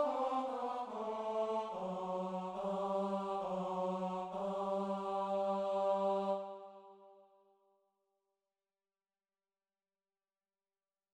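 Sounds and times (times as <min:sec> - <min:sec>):
tenor singing mass section: 0:00.0 - 0:07.0.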